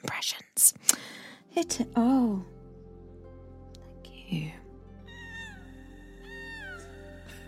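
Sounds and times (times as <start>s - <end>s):
speech: 1.6s - 2.6s
person imitating whale song: 5.1s - 7.4s.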